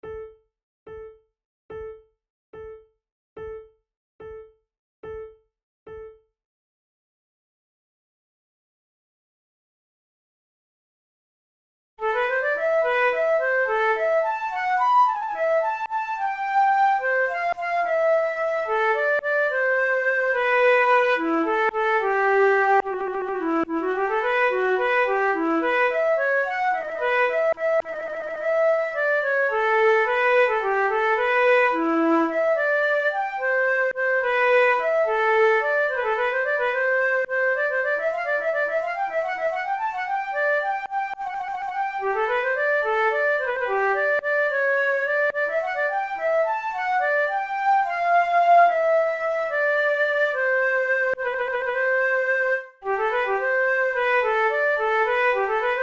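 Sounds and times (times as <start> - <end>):
two flutes playing: 12.0 - 55.8.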